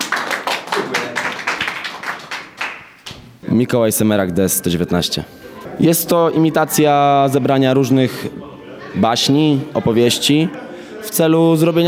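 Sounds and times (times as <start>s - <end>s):
small group clapping: 0.0s - 3.4s
speech: 3.5s - 11.8s.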